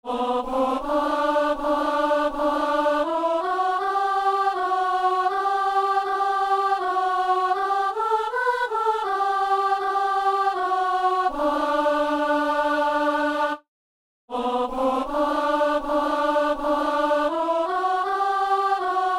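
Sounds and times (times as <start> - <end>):
alto voice singing: 0.1 - 13.6, 14.3 - 19.1.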